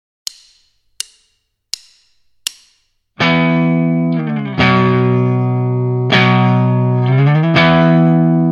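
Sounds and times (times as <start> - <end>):
rhythm guitar slides and hits: 1.8 - 8.4.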